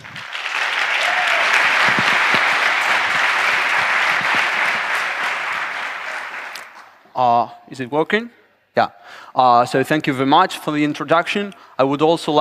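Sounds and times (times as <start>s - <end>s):
audience applause: 0.0s - 7.0s
speech: 7.2s - 12.3s.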